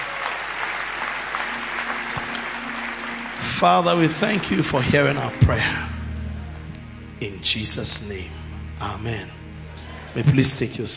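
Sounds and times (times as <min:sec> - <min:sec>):
people clapping: 0:00.0 - 0:05.4
speech: 0:03.6 - 0:05.9, 0:07.2 - 0:09.4, 0:10.1 - 0:10.9.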